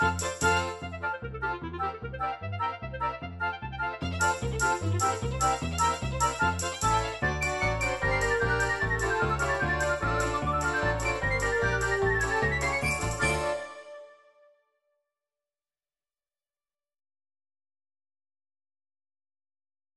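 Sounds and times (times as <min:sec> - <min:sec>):
Russian Ukrainian MIDI music: 0:00.0 - 0:14.2.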